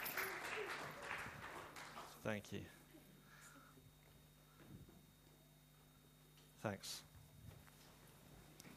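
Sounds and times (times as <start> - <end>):
audience clapping: 0.0 - 2.2
speech: 2.2 - 2.8, 6.6 - 7.1.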